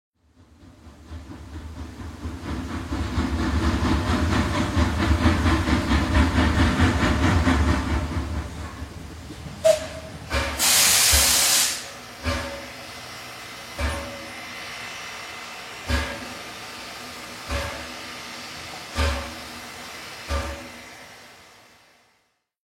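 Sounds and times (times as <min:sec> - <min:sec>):
locomotive: 0:00.2 - 0:21.9.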